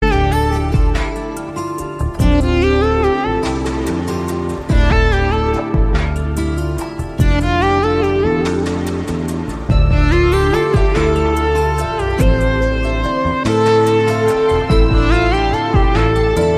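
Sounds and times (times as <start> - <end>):
instrumental Bollywood ringtone: 0.0 - 16.5.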